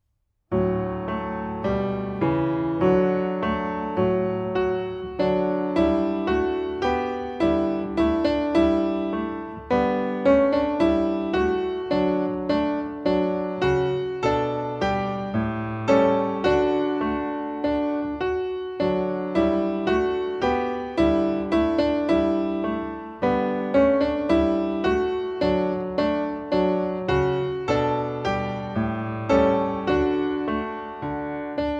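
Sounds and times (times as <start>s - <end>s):
solo music: 0.5s - 31.7s.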